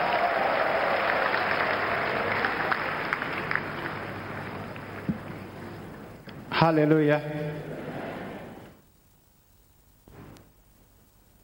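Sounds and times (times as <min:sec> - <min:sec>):
crowd clapping: 0:00.0 - 0:06.1
speech: 0:06.6 - 0:07.7.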